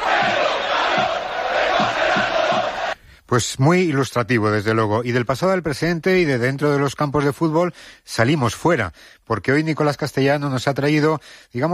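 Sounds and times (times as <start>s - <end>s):
football stadium crowd shouting racist chants: 0.0s - 3.0s
speech: 3.3s - 11.7s.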